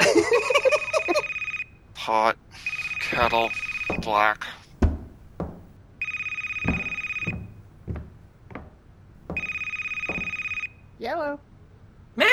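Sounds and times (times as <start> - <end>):
laughter: 0.0 - 1.3
telephone ringing: 0.0 - 8.2, 9.2 - 10.8
speech: 2.1 - 2.4, 3.2 - 4.6
sharp knocks or clunks: 2.6 - 10.7.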